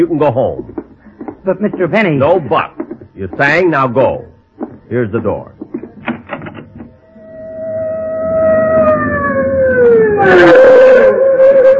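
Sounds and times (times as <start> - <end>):
speech: 0.0 - 0.8, 1.4 - 4.3, 4.9 - 5.6, 10.2 - 10.8
fire engine siren: 7.0 - 11.7.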